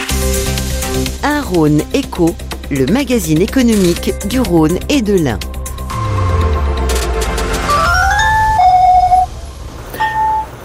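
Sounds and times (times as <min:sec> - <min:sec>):
traffic rumble: 0:01.0 - 0:10.6
speech: 0:01.5 - 0:05.5
audible pedestrian crossing signal for blind people: 0:03.0 - 0:10.6.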